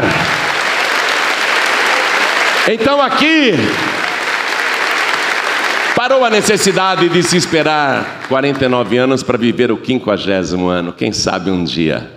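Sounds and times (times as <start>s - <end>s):
audience applauding: 0.0s - 9.4s
speech: 2.7s - 4.0s, 6.0s - 12.1s.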